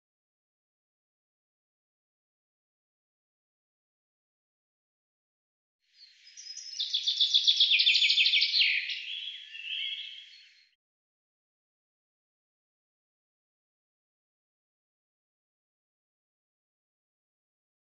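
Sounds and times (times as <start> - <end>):
bird giving a fast run of sharp high chirps: 6.0 - 10.8.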